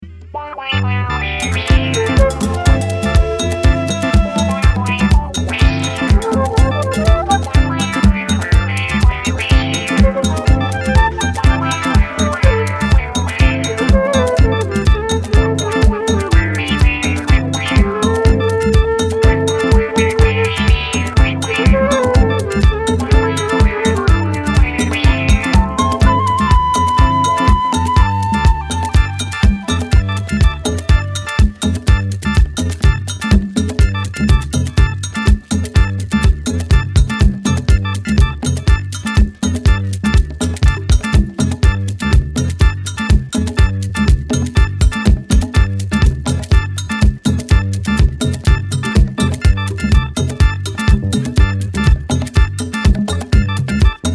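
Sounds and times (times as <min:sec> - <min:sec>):
Yoruba soul instrumental mix: 0:00.4 - 0:54.1.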